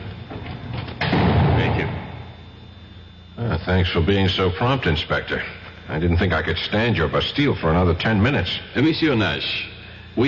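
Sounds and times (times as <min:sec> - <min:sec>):
cell door closing: 0:00.0 - 0:02.4
speech: 0:03.6 - 0:10.2.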